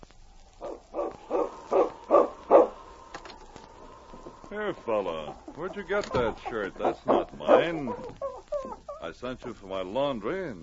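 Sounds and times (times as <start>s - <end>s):
dog barking: 0.6s - 2.8s, 6.8s - 8.4s
speech: 4.5s - 8.2s, 9.0s - 10.6s.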